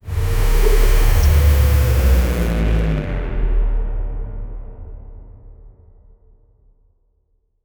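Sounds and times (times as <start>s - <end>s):
cinematic downer effect: 0.0s - 4.7s.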